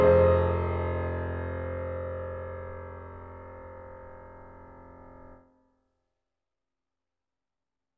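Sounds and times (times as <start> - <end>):
ambient piano music: 0.0 - 5.4.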